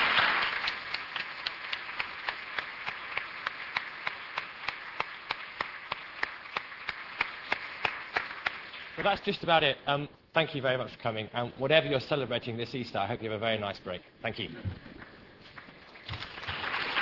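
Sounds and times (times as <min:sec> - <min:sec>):
audience round of applause: 0:00.0 - 0:09.0, 0:15.0 - 0:17.0
speech: 0:09.0 - 0:14.8.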